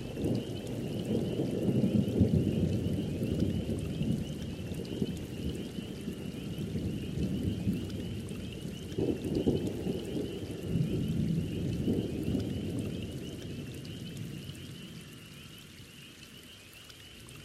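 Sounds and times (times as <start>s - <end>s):
gentle thunderstorm: 0.0s - 17.4s.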